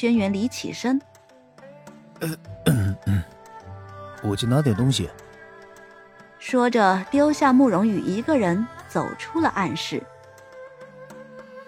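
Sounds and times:
speech: 0.0 - 1.1, 2.2 - 3.4, 4.2 - 5.2, 6.4 - 10.1
voice imitating a man's awkward throat clearing and coughs: 2.2 - 3.3.

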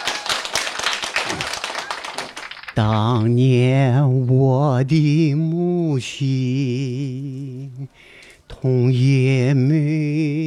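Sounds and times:
audience applause: 0.0 - 2.8
speech: 2.8 - 10.3.

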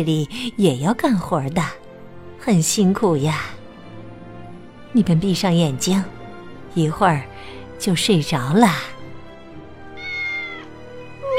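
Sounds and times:
speech: 0.0 - 1.8, 2.4 - 3.6, 4.9 - 6.2, 6.8 - 8.9
cat meowing in a barn: 9.9 - 11.3.

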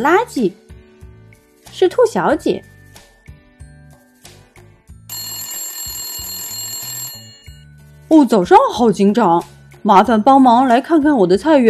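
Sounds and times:
speech: 0.0 - 0.6, 1.7 - 2.7, 8.1 - 11.6
telephone ringing: 5.1 - 7.7.

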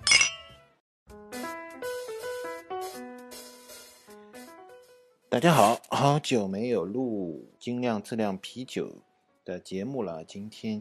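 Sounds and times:
glasses clinking in a toast: 0.0 - 0.6
speech: 5.3 - 10.7.

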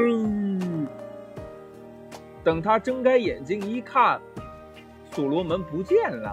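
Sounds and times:
voice imitating a young lion's roar: 0.0 - 1.1
speech: 2.4 - 4.4, 5.1 - 6.3.

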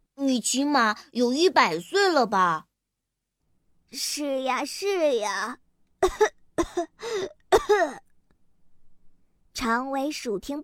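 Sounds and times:
speech: 0.3 - 2.7, 3.9 - 8.0, 9.6 - 10.6
coughing: 6.0 - 8.1.

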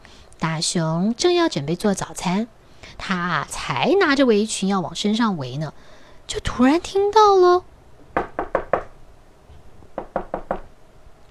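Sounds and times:
speech: 0.4 - 7.7
knocking on a door: 8.1 - 9.0, 9.8 - 10.7.

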